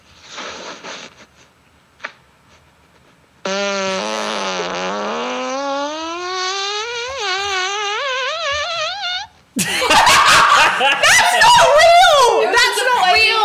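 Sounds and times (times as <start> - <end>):
recorded fart played into microphone: 0.1 - 9.6
laughter: 9.6 - 13.3.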